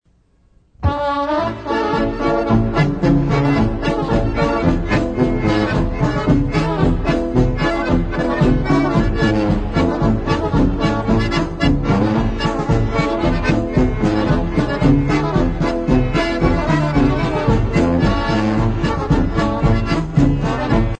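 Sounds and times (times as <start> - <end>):
polka music: 0.8 - 20.9.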